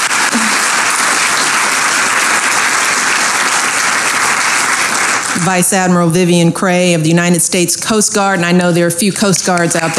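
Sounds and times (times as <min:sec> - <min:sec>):
large audience applause: 0:00.0 - 0:05.6
speech: 0:05.4 - 0:09.9.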